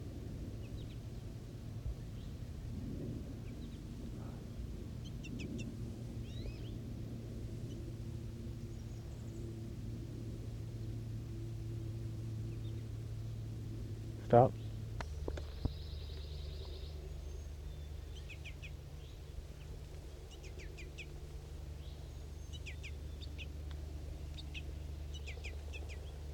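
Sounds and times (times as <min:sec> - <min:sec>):
birds in a tree, female feeding juvenile: 0:00.5 - 0:26.3
speech: 0:14.3 - 0:14.6.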